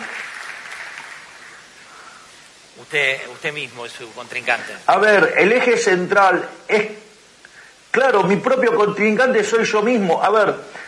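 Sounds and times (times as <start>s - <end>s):
crowd applauding: 0.0s - 1.7s
speech: 2.8s - 7.0s, 7.9s - 10.8s.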